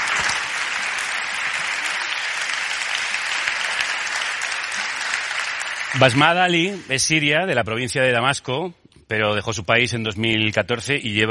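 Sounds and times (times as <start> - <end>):
audience applauding: 0.0 - 7.5
speech: 6.0 - 11.2.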